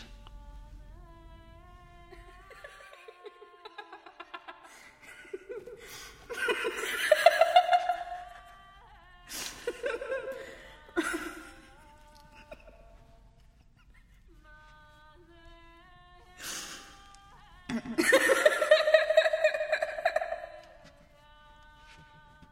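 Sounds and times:
people laughing in meditation: 2.1s - 8.6s, 9.3s - 11.7s, 17.7s - 20.9s.

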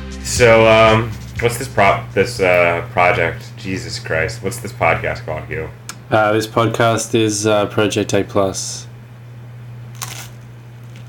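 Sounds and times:
speech: 0.2s - 8.9s
steady low electrical hum: 0.2s - 11.0s
crisp bite of toast crunching: 9.9s - 11.0s.

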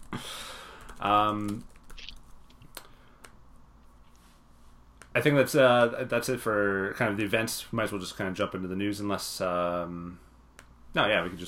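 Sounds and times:
fast typing on a computer keyboard: 0.8s - 2.3s
speech: 1.0s - 1.7s, 5.2s - 10.2s, 10.9s - 11.4s.

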